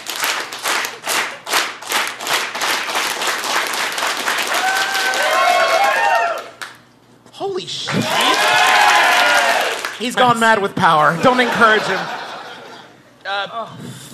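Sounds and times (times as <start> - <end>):
audience slow clap speeding into applause: 0.0 - 6.9, 7.9 - 10.2
whoops and cheering voices: 4.5 - 6.6, 7.9 - 9.8
speech: 10.0 - 12.2, 13.3 - 14.1
laughter: 11.0 - 13.2.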